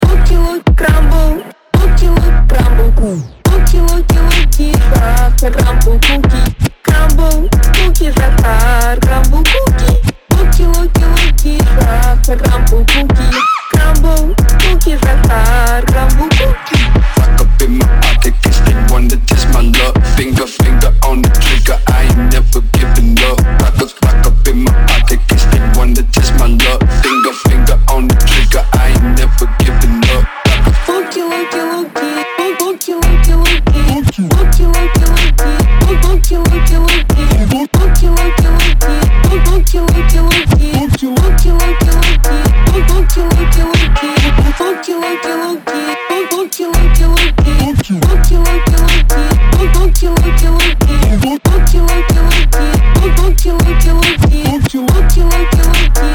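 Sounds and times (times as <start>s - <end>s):
slowed phonk music: 0.0s - 56.1s.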